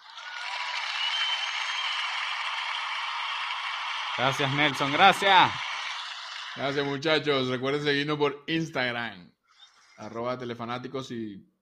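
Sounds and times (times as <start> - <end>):
applause: 0.0 - 7.3
speech: 4.2 - 5.7, 6.6 - 9.4, 10.0 - 11.5.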